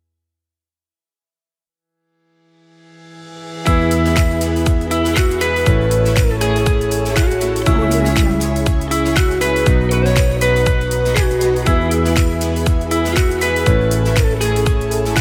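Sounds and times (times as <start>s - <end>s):
energetic upbeat corporate pop music: 3.7s - 15.1s.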